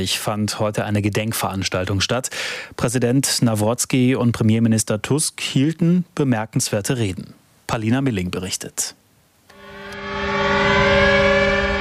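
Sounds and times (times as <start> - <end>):
speech: 0.0 - 9.0
memorial air-raid sirens over the Westerplatte: 9.5 - 11.7.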